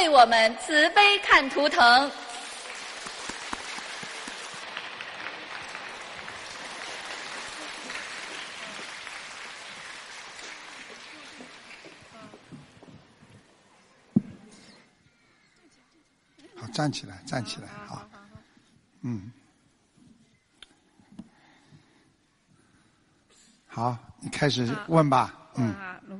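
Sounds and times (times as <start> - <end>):
speech: 0.1 - 2.2, 16.8 - 18.1, 19.0 - 19.4, 23.7 - 26.1
warm audience applause: 2.4 - 12.9.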